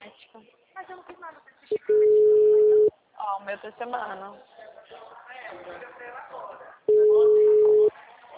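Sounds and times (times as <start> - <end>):
telephone busy signal: 1.8 - 2.9, 6.9 - 7.9
speech: 3.5 - 4.5.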